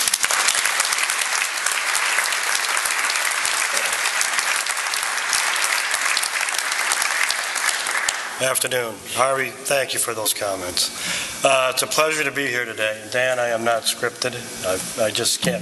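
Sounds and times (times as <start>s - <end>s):
audience applause welcoming a speaker to the podium: 0.0s - 8.6s
speech: 8.4s - 15.5s.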